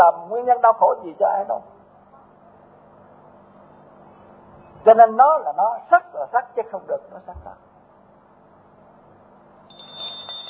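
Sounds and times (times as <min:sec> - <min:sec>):
soft hum: 0:00.0 - 0:10.4
speech: 0:00.1 - 0:01.8, 0:04.8 - 0:07.7
bell ringing: 0:09.7 - 0:10.4.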